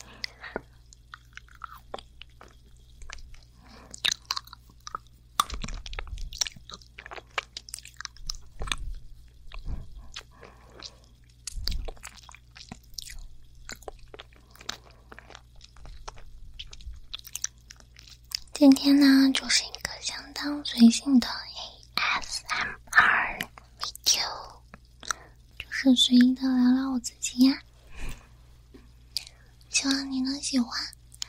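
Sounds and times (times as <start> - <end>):
wet chewing: 0.0 - 18.7, 21.8 - 26.3
crunching an orange-flavoured lollipop: 0.1 - 18.6
speech: 18.6 - 19.8, 20.4 - 21.4, 25.8 - 27.7, 29.8 - 30.9.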